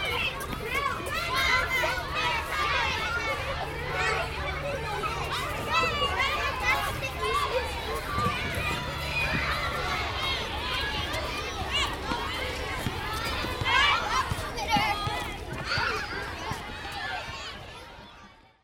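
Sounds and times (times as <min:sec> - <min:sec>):
elementary school ambience: 0:00.0 - 0:18.6.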